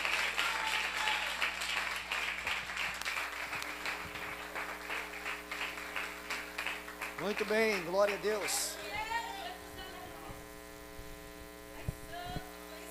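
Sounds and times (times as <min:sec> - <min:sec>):
audience applauding: 0:00.0 - 0:08.9
speech: 0:07.2 - 0:08.8.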